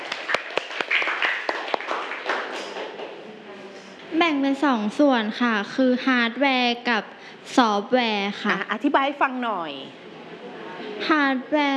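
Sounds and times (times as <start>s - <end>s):
classroom clapping: 0.0s - 3.2s
speech: 4.2s - 10.0s, 11.0s - 11.7s.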